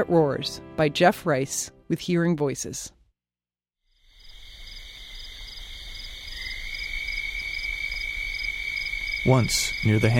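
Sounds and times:
speech: 0:00.0 - 0:03.0, 0:09.2 - 0:10.1
chorus of toads croaking: 0:03.9 - 0:10.1.

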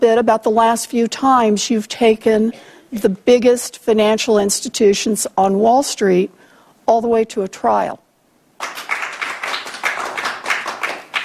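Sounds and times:
speech: 0:00.0 - 0:08.0
scattered applause: 0:08.6 - 0:11.2.

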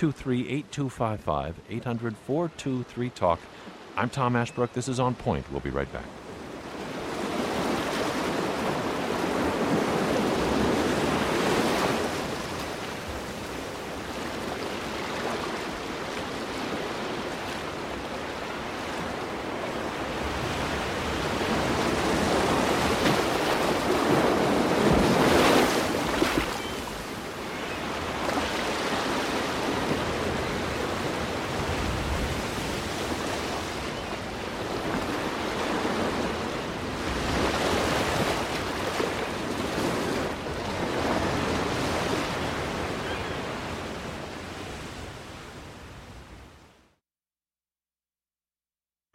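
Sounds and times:
speech: 0:00.0 - 0:06.2
water: 0:00.0 - 0:47.0
wind: 0:00.0 - 0:47.0
birds: 0:26.3 - 0:28.2, 0:33.6 - 0:34.6, 0:42.4 - 0:43.7.

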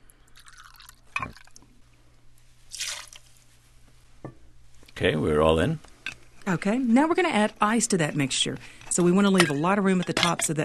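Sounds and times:
rye whiskey poured into a mixing glass: 0:00.3 - 0:01.6, 0:02.7 - 0:03.2
speech: 0:05.0 - 0:10.6.

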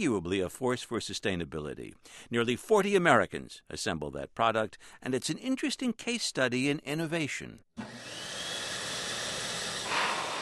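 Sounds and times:
speech: 0:00.0 - 0:08.4
electric hand dryer running: 0:07.8 - 0:10.4.

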